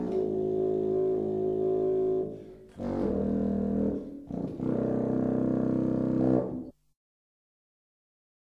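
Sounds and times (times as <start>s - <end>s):
contrabassoon: 0.0s - 6.7s.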